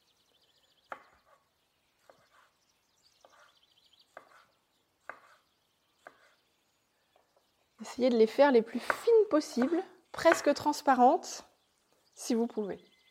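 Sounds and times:
knife chopping a chili pepper into thin rounds on a cutting board: 0:04.1 - 0:05.4, 0:06.0 - 0:06.3, 0:08.9 - 0:10.5
speech: 0:08.0 - 0:11.5, 0:12.2 - 0:12.9.

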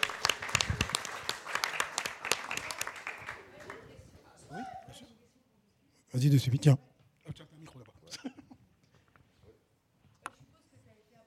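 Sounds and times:
small crowd applauding: 0:00.0 - 0:04.0
speech: 0:06.2 - 0:06.9.

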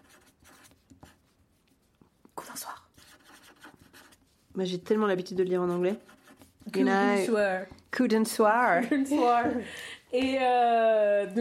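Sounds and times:
pen scratching on paper in ASMR style: 0:00.0 - 0:01.8, 0:02.4 - 0:07.1
speech: 0:04.6 - 0:06.1, 0:06.8 - 0:11.4.

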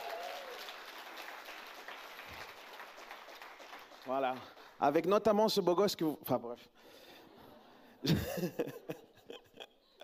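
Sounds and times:
crowd applauding for the inauguration: 0:00.0 - 0:05.1
speech: 0:04.1 - 0:07.0, 0:08.0 - 0:09.0
laughter: 0:08.0 - 0:10.0.

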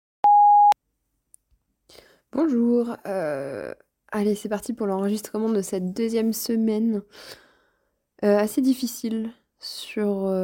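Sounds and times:
answering machine beep: 0:00.2 - 0:00.8
speech: 0:01.9 - 0:07.4, 0:08.2 - 0:10.4.

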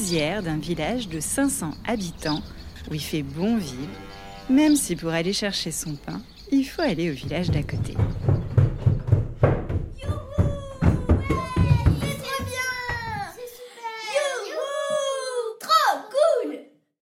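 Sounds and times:
speech: 0:00.0 - 0:08.3
little girls shouting and shrieking while playing: 0:09.9 - 0:16.8.

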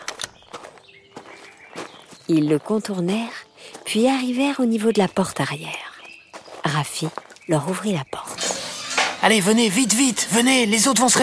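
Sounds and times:
footsteps of several people walking: 0:00.0 - 0:08.3
speech: 0:02.3 - 0:05.8, 0:06.7 - 0:08.2, 0:09.2 - 0:11.2.

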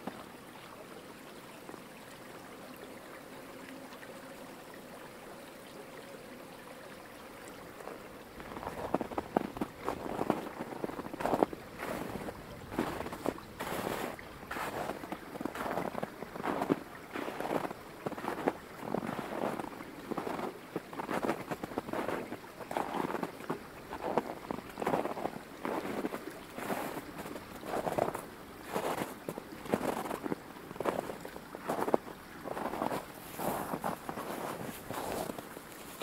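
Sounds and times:
flowing creek rushing: 0:00.0 - 0:36.0
boots crunching through snow: 0:08.4 - 0:23.3, 0:23.9 - 0:30.2, 0:31.7 - 0:36.0.

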